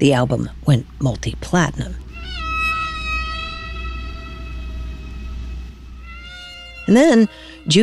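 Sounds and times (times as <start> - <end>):
speech: 0.0 - 2.0, 6.9 - 7.8
constant low rumble and hiss: 0.0 - 7.8
recorded whale song: 2.0 - 7.8.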